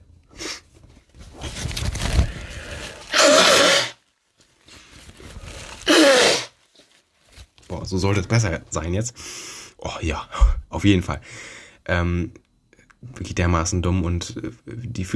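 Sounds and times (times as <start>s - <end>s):
rustling and handling noise: 0.6s - 3.2s, 4.0s - 5.9s, 6.5s - 8.9s
nose blowing into a tissue: 2.7s - 4.0s, 5.4s - 6.6s
speech: 7.9s - 12.4s, 13.0s - 15.1s.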